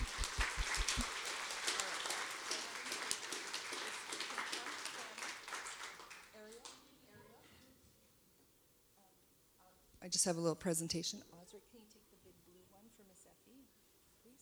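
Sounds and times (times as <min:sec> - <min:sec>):
audience clapping: 0:00.0 - 0:06.8
speech: 0:10.1 - 0:12.1.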